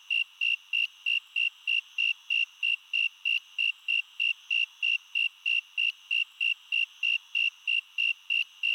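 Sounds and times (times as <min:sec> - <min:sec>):
Snowy tree cricket giving pure high chirps: 0:00.0 - 0:08.7.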